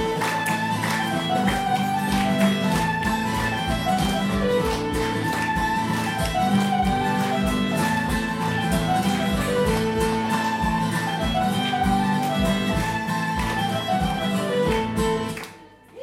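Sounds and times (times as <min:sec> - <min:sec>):
polka music: 0:00.0 - 0:15.8.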